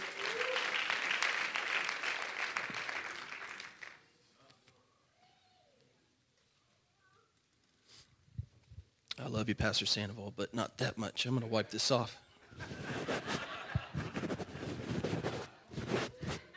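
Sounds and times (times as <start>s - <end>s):
audience applause: 0.0s - 4.1s
speech: 9.3s - 12.8s
laughter: 12.5s - 16.5s.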